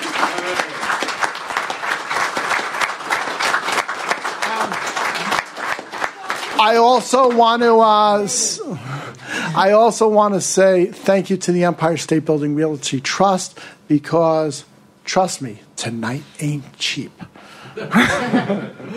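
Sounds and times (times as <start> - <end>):
audience applause: 0.0 - 7.8
speech: 6.6 - 8.9, 9.6 - 18.9
laughter: 17.5 - 18.9.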